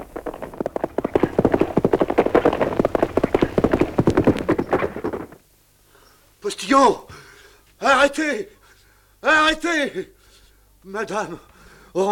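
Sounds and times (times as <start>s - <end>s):
horses galloping, hooves clip-clopping: 0.0s - 5.4s
speech: 6.5s - 7.2s, 7.8s - 8.6s, 9.2s - 10.2s, 10.8s - 12.1s.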